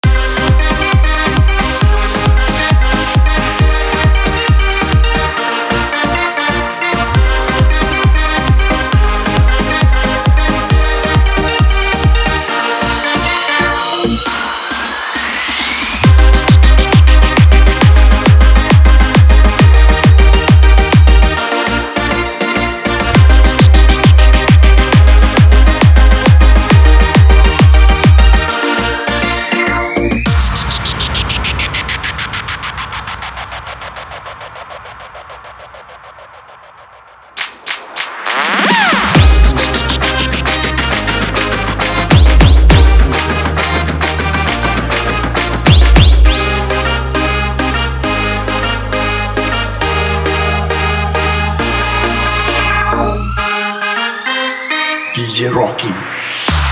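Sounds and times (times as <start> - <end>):
tapori EDM: 0.0 - 56.7.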